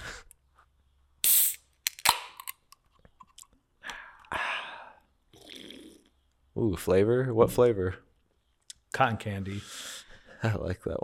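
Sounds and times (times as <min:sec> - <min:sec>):
can of Spindrift sparkling water cracked open: 0:01.2 - 0:02.8
speech: 0:06.6 - 0:08.1, 0:09.0 - 0:09.8, 0:10.4 - 0:11.0.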